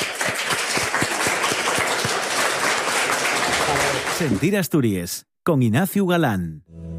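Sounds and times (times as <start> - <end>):
audience applause: 0.0 - 4.6
speech: 4.2 - 6.9.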